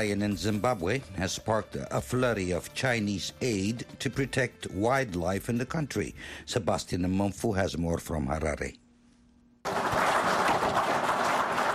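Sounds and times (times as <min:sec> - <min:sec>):
speech: 0:00.0 - 0:08.8
Zimbabwean officials clapping: 0:09.6 - 0:11.7.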